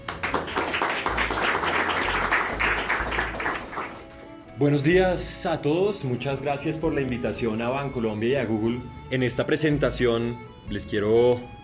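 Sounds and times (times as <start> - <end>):
audience applause: 0.0 - 4.4
speech: 4.6 - 11.6.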